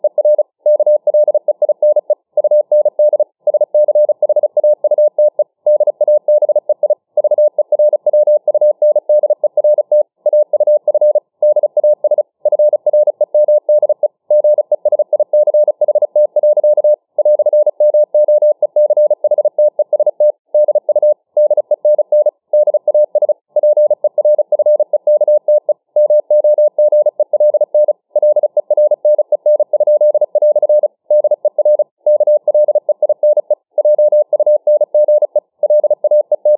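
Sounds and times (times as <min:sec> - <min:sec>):
Morse code tones at 35 words per minute: 0:00.0 - 0:36.5.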